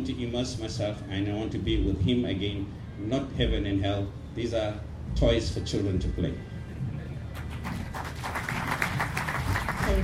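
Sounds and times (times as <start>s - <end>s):
speech: 0.0s - 6.5s
audience applause: 7.4s - 10.0s.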